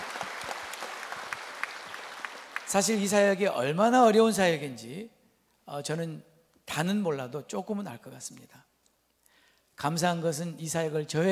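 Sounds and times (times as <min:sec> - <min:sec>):
church congregation applauding during a Korean service: 0:00.0 - 0:03.2
speech: 0:02.7 - 0:08.7, 0:09.8 - 0:11.3.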